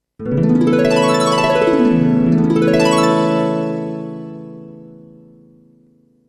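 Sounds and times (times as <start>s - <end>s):
clear harp jingle: 0.2s - 4.8s.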